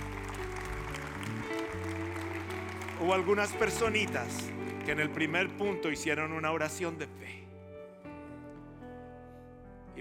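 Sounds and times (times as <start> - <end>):
church congregation applauding in praise of the Heavenly Father: 0.0 - 6.4
sustained shifting keyboard chords: 0.0 - 9.9
speech: 3.0 - 7.4.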